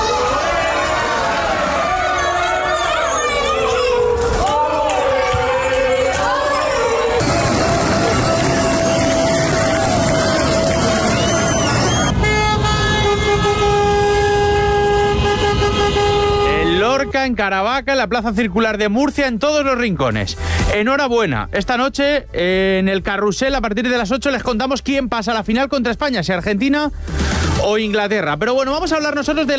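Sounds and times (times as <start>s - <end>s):
crowd roar celebrating a football win in Murcia: 0.0s - 17.0s
car and truck horns blaring in a football street celebration in Murcia: 11.8s - 17.3s
speech: 17.2s - 29.5s.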